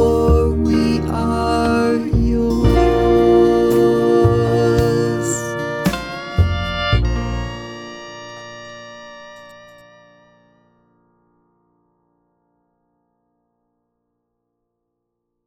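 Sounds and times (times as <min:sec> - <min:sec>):
person singing a Pentecost song in B flat: 0:00.0 - 0:08.0.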